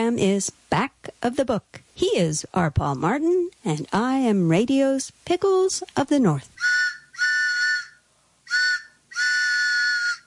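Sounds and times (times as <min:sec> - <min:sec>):
speech: 0:00.0 - 0:06.8
train whistle blasts: 0:06.6 - 0:10.2.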